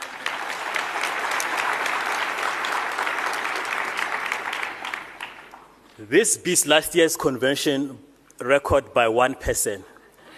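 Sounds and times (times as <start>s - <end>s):
convention audience applause: 0.0s - 5.7s
speech: 6.0s - 9.9s.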